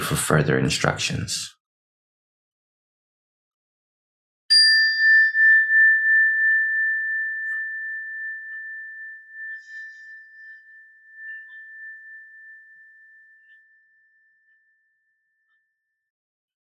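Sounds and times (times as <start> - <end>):
speech: 0.1 - 1.6
meditation bell ringing: 4.5 - 13.5.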